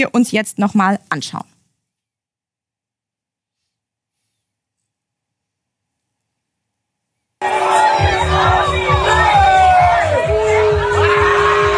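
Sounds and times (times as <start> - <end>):
speech: 0.0 - 1.5
mob booing reporters: 7.4 - 11.7.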